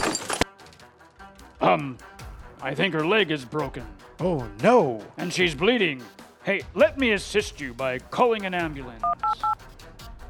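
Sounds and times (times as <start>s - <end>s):
person falling off a ladder crash and clatter: 0.0s - 0.9s
speech: 1.6s - 9.4s.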